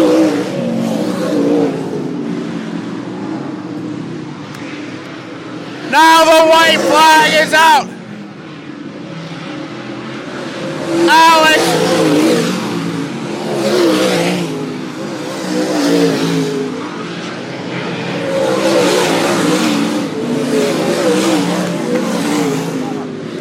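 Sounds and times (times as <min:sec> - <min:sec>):
race cars revving on speedway: 0:00.0 - 0:23.3
speech: 0:06.7 - 0:08.0.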